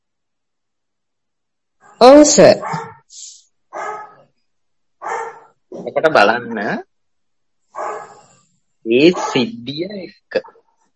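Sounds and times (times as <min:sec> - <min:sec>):
dog barking: 0:01.8 - 0:03.1, 0:03.7 - 0:04.3, 0:05.0 - 0:05.6, 0:07.7 - 0:08.3, 0:09.0 - 0:09.5
speech: 0:02.0 - 0:02.9, 0:06.0 - 0:06.9, 0:08.8 - 0:10.5.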